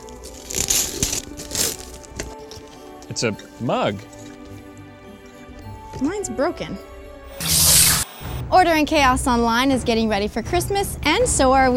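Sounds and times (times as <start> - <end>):
gift wrapping paper being torn open: 0.0 - 2.4, 7.4 - 8.0
speech: 3.1 - 4.2, 6.0 - 6.9, 8.5 - 11.7.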